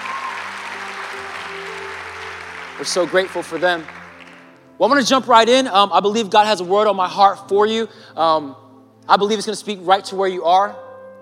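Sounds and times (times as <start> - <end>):
audience applause: 0.0 - 4.5
speech: 2.8 - 4.0, 4.8 - 10.8.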